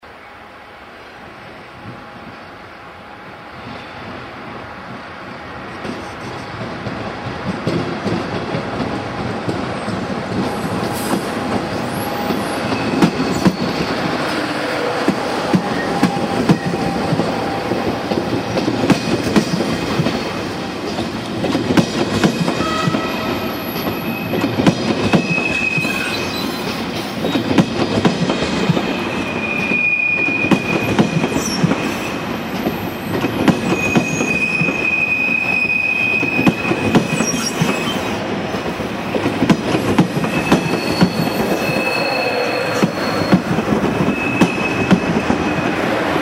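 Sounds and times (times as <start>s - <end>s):
train: 0.0s - 46.2s.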